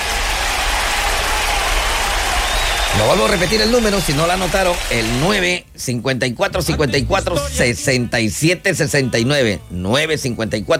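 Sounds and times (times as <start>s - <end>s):
audience applause: 0.0s - 5.5s
speech: 3.0s - 10.7s.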